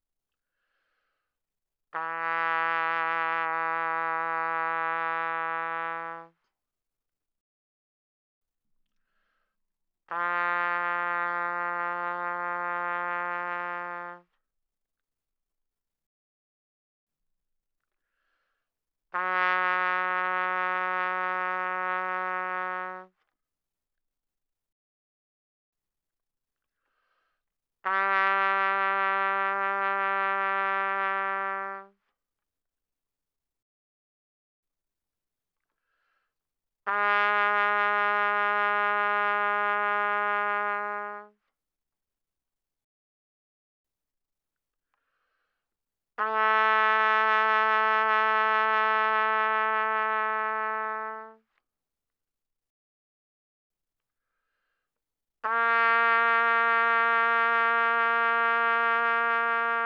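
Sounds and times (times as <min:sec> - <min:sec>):
trumpet playing with vibrato mezzo-forte: 0:02.0 - 0:06.3, 0:10.1 - 0:14.2, 0:19.2 - 0:23.1, 0:27.8 - 0:31.9, 0:36.9 - 0:41.4, 0:46.2 - 0:51.4, 0:55.4 - 0:59.8.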